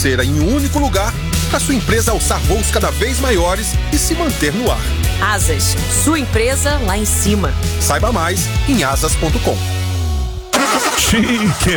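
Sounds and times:
speech: 0.0s - 9.8s, 11.1s - 11.7s
car engine breaking down and sputtering: 3.6s - 11.7s.

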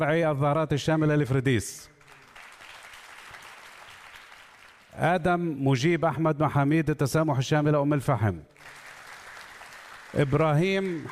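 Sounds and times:
speech: 0.0s - 1.9s, 5.0s - 8.5s, 10.1s - 11.0s
audience applause greeting student ambassadors at a ceremony: 2.0s - 4.9s, 8.6s - 11.0s.

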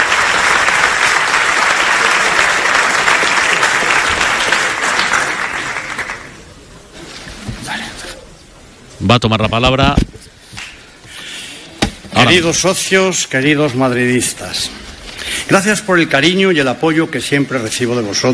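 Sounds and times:
auditorium applause in a Madrid hotel: 0.0s - 6.6s
speech: 9.1s - 10.1s, 12.3s - 14.8s, 15.5s - 18.3s.

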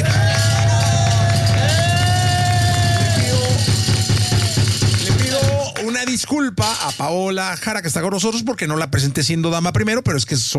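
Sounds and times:
studio audience applause: 0.0s - 6.3s
speech: 6.2s - 10.5s.

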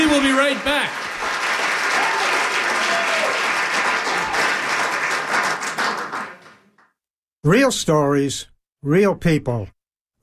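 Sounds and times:
audience applause: 0.0s - 6.8s
speech: 0.1s - 1.0s, 7.4s - 9.8s.

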